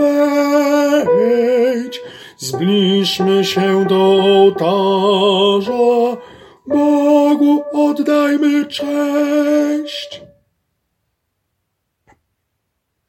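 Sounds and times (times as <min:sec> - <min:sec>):
tenor singing: 0:00.0 - 0:10.4.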